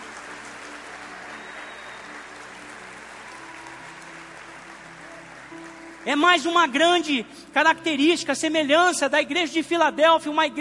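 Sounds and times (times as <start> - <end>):
audience applauding: 0.0 - 7.2
speech: 6.0 - 10.6.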